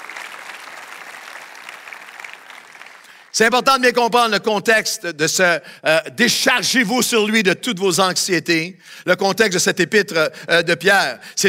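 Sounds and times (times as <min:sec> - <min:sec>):
audience applause: 0:00.0 - 0:03.3
speech: 0:03.4 - 0:11.4.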